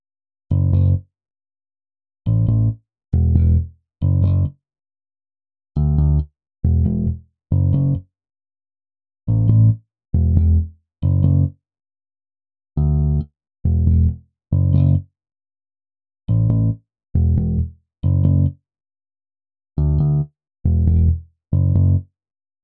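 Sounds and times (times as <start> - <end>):
bass: 0.5 - 1.1, 2.3 - 4.6, 5.8 - 8.1, 9.3 - 11.6, 12.8 - 15.1, 16.3 - 18.6, 19.8 - 22.1.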